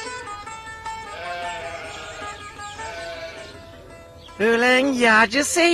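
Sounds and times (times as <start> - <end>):
several sheep bleating: 0.9 - 3.9
speech: 5.2 - 5.7.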